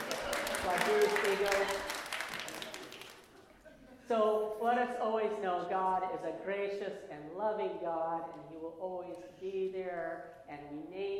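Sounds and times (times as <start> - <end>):
crowd applauding: 0.0 - 3.6
speech: 0.6 - 2.0, 4.1 - 11.1.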